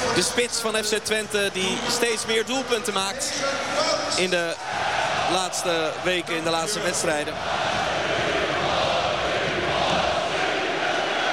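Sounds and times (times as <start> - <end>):
stadium crowd cheering after a goal in the Grolsch Veste: 0.0 - 11.3
speech: 0.2 - 7.8.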